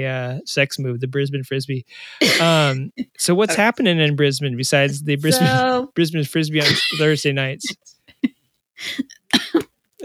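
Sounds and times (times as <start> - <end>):
speech: 0.0 - 8.0, 8.8 - 9.2
laughter: 0.2 - 7.9
person coughing from choking on a drink: 2.0 - 2.9, 4.9 - 5.6, 6.6 - 10.0.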